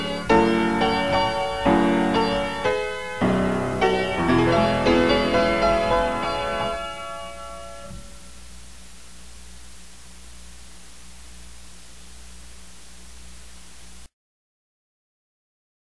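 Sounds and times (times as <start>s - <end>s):
piano: 0.0s - 8.5s.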